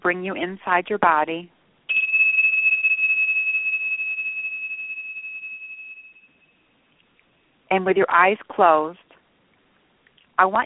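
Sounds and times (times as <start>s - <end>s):
speech: 0.0s - 1.6s, 7.7s - 9.0s, 10.4s - 10.6s
meditation bell tone: 1.9s - 6.8s.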